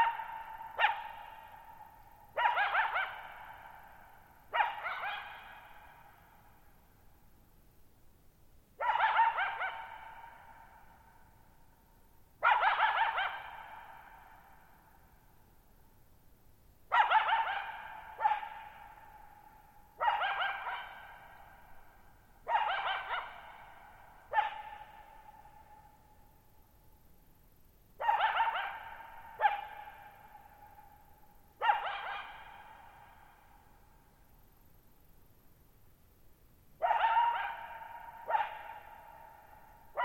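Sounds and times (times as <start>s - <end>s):
coyote barking: 0.0s - 6.4s, 8.8s - 11.1s, 12.4s - 14.7s, 16.9s - 26.0s, 28.0s - 33.9s, 36.8s - 40.0s.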